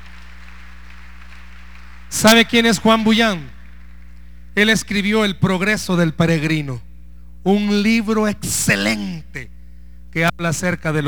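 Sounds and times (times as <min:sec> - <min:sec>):
audience applause: 0:00.0 - 0:04.3
speech: 0:02.1 - 0:03.6, 0:04.6 - 0:11.0.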